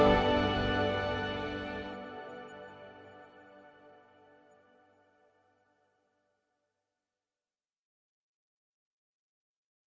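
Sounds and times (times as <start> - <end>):
ambient music: 0.0 - 5.6.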